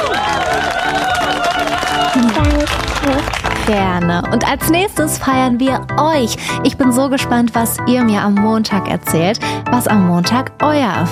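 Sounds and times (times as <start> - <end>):
applause: 0.0 - 4.2
speech: 3.7 - 11.0.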